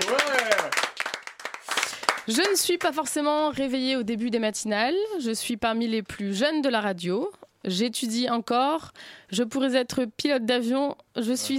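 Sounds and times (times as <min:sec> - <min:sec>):
people clapping: 0:00.0 - 0:03.4
speech: 0:02.3 - 0:11.5.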